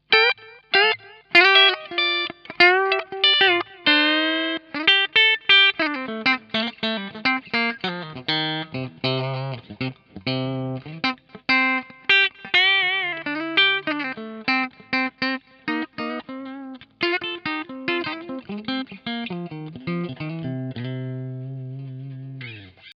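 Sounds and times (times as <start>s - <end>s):
Harley Benton TE 70 clean electric guitar: 0.0s - 22.9s.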